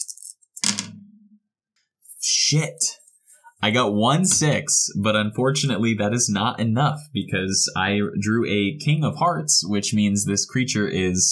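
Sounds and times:
dice being rolled: 0.0 - 1.0
speech: 2.5 - 3.0, 3.6 - 11.3.

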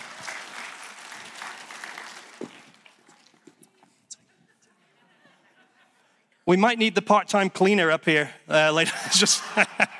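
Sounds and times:
audience clapping: 0.0 - 3.7
laughter: 4.1 - 6.4, 8.8 - 9.9
speech: 6.5 - 9.9.

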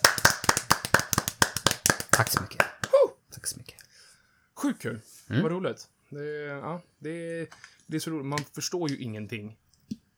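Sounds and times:
hands clapping: 0.0 - 3.0
speech: 2.2 - 2.8, 4.6 - 9.6.

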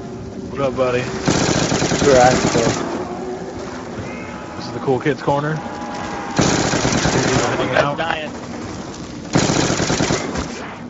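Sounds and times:
players talking: 0.3 - 9.3
speech: 0.6 - 2.9, 4.8 - 5.8
automatic gunfire in a video game: 1.2 - 2.9, 6.1 - 10.7.

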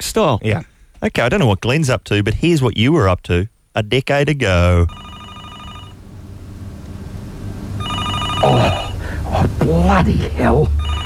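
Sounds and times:
speech: 0.0 - 5.1, 8.4 - 8.8, 9.4 - 10.8
telephone ringing with electronic trill: 4.9 - 6.0, 7.8 - 9.0, 10.8 - 11.0.

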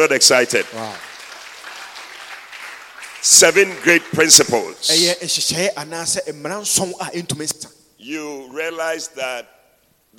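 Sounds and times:
speech: 0.0 - 1.1, 3.2 - 10.1
audience clapping hands: 0.0 - 5.2.

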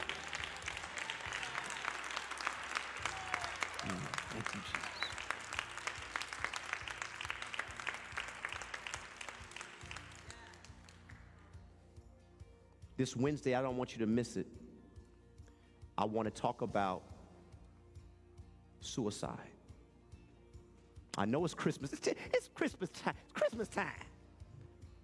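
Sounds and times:
audience applause: 0.0 - 11.0
speech: 3.9 - 5.0, 13.0 - 14.5, 16.0 - 17.1, 19.0 - 19.6, 21.2 - 24.0.

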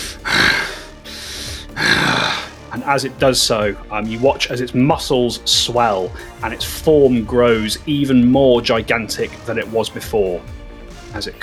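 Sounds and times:
voice imitating heavy breathing of a huge creature: 0.0 - 2.7
speech: 2.9 - 11.4.

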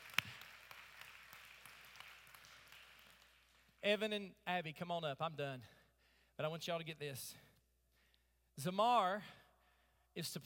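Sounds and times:
audience clapping hands: 0.0 - 3.8
speech: 3.8 - 5.8, 6.4 - 7.5, 8.6 - 9.4, 10.2 - 10.4.

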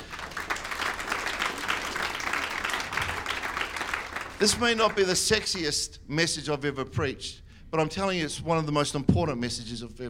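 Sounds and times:
audience clapping: 0.0 - 5.6
speech: 4.4 - 10.0.

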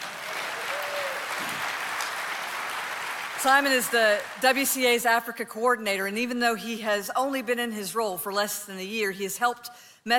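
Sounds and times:
audience applause: 0.0 - 4.5
speech: 3.4 - 10.1.

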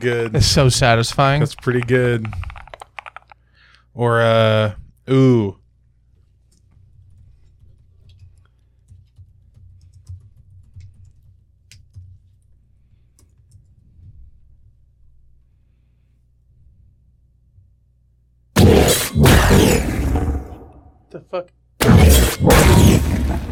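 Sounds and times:
speech: 0.0 - 2.5, 4.0 - 5.6, 21.2 - 21.6
soft computer keyboard typing: 1.4 - 3.4, 7.1 - 12.2
loud harsh burst of noise: 18.6 - 20.9, 21.8 - 23.5.

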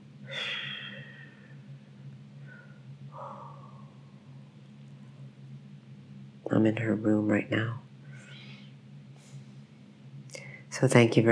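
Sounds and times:
steady low hum: 0.0 - 11.3
girl exhaling sharply through the nose: 0.3 - 1.6
speech: 6.5 - 7.8, 10.8 - 11.3.

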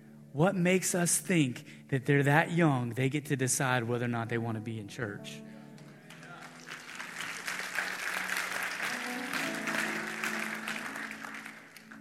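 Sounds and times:
speech: 0.4 - 5.5
audience applause: 5.8 - 11.9.

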